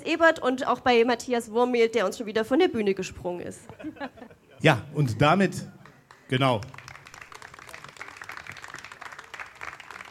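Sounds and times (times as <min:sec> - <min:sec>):
speech: 0:00.1 - 0:06.8
laughter: 0:03.6 - 0:04.8
audience applause: 0:05.8 - 0:10.0.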